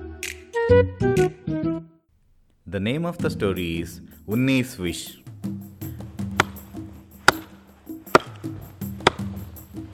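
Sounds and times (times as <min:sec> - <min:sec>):
speech: 0:00.7 - 0:01.1, 0:02.7 - 0:05.2
hammer blows: 0:05.9 - 0:09.9.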